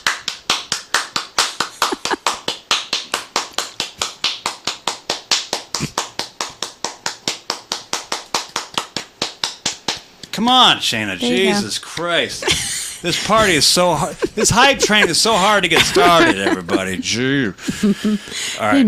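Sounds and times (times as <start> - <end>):
hands clapping: 0.0 - 10.4, 11.3 - 12.2, 13.3 - 16.8
laughter: 1.7 - 2.3, 11.2 - 11.6, 12.2 - 18.3
speech: 10.4 - 18.8.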